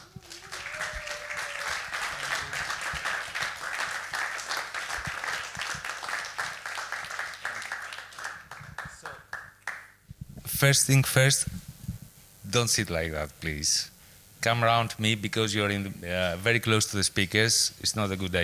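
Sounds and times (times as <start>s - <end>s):
audience applause: 0.0s - 9.8s
speech: 10.6s - 11.6s, 12.5s - 18.4s.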